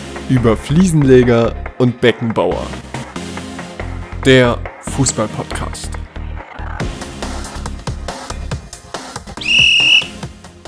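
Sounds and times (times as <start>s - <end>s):
speech: 0.3s - 2.9s, 4.2s - 6.0s
referee's kick-off whistle: 9.4s - 10.2s.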